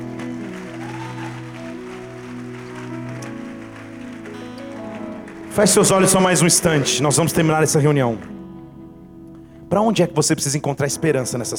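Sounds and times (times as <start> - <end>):
church audience applauding: 0.0 - 8.4
speech: 5.6 - 8.4, 9.7 - 11.5.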